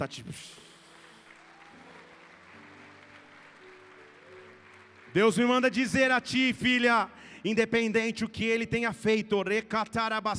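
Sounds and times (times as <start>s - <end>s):
speech: 0.0s - 0.6s, 5.2s - 10.3s
audience applause: 0.5s - 6.2s.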